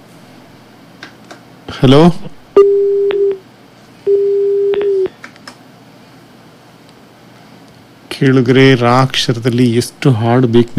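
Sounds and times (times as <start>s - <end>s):
speech: 1.7s - 2.3s, 8.2s - 10.7s
long phone beeps from a call cut off after being answered: 2.6s - 3.4s, 4.1s - 5.1s.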